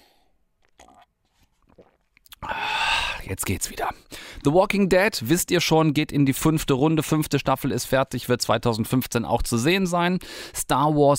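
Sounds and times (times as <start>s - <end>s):
person sipping a drink: 0.0s - 3.3s
swallowing: 0.6s - 3.2s
speech: 3.3s - 11.1s.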